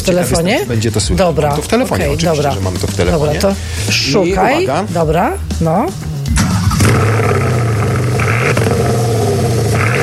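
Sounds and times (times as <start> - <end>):
speech: 0.0 - 6.1
Porsche Panamera engine revving: 6.1 - 10.0.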